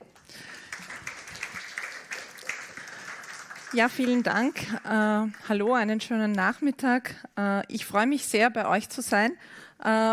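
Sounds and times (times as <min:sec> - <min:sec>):
audience applause: 0:00.2 - 0:05.9
speech: 0:03.7 - 0:10.1.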